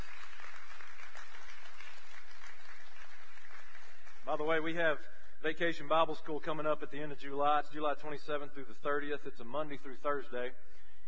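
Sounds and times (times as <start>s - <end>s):
audience clapping: 0.0s - 4.6s
speech: 4.3s - 11.0s.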